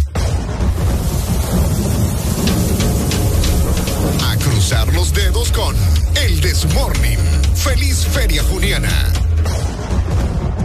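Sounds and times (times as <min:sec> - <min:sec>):
crackling thunder bursts: 0:00.2 - 0:06.6
heavy rain: 0:00.2 - 0:07.6
thunder rumbling: 0:00.2 - 0:07.6
speech: 0:06.5 - 0:09.7.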